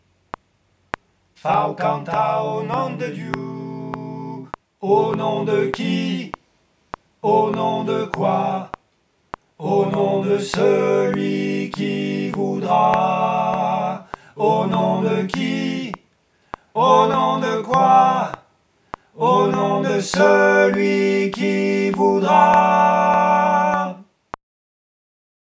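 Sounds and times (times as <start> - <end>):
three-voice choir singing: 1.4 - 6.4, 7.2 - 8.8, 9.6 - 16.0, 16.8 - 18.4, 19.2 - 24.1.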